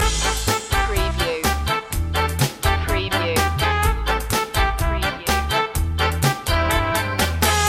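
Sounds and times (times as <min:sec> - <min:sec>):
rainy day ska loop in D: 0:00.0 - 0:07.6.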